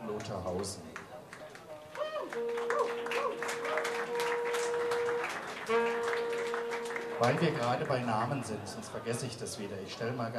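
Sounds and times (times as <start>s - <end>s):
audience clapping: 0.0s - 9.3s
speech: 0.2s - 1.1s, 7.2s - 10.3s.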